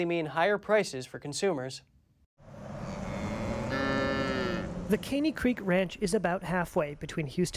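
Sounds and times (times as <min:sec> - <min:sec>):
speech: 0:00.0 - 0:01.9, 0:04.9 - 0:07.5
cow mooing: 0:02.8 - 0:04.9.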